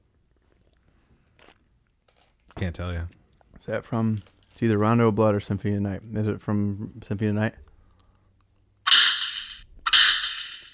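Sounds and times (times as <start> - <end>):
speech: 2.6 - 7.6
video game parry slap sound effect: 8.9 - 10.7.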